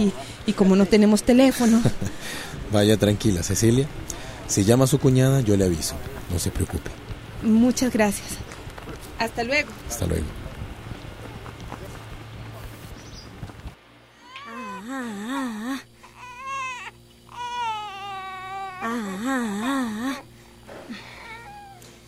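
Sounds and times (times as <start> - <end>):
speech: 0.0 - 8.5, 9.2 - 10.4
mixed noise: 0.0 - 22.0
baby crying: 14.2 - 20.2, 20.9 - 21.8.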